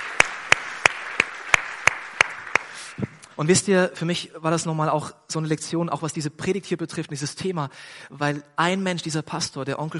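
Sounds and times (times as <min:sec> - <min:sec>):
audience applause: 0:00.0 - 0:03.0
speech: 0:03.4 - 0:09.9.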